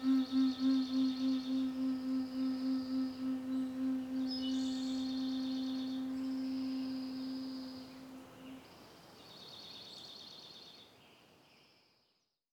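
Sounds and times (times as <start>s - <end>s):
relaxing Eastern music: 0.0s - 8.6s.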